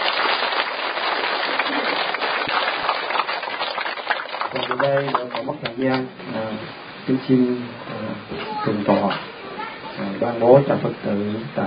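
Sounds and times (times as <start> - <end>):
audience applauding: 0.0 - 6.0
speech: 4.8 - 9.4, 10.0 - 11.6.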